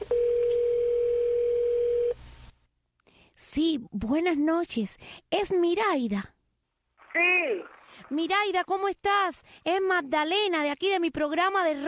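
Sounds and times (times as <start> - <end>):
telephone tone as a call is placed: 0.0 - 2.2
speech: 3.5 - 6.4, 7.1 - 11.8.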